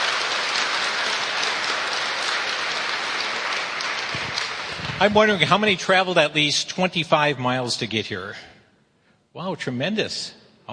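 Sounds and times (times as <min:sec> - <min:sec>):
auditorium audience applause: 0:00.0 - 0:06.2
speech: 0:05.0 - 0:08.5, 0:09.4 - 0:10.7.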